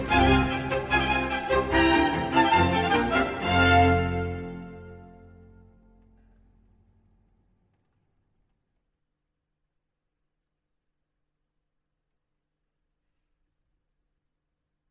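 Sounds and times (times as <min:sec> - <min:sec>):
flute concerto allegro in F major: 0:00.0 - 0:05.6.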